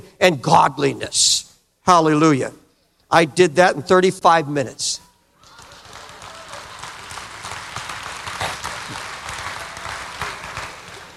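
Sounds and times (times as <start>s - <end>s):
speech: 0.0s - 5.1s
audience clapping: 5.4s - 11.1s.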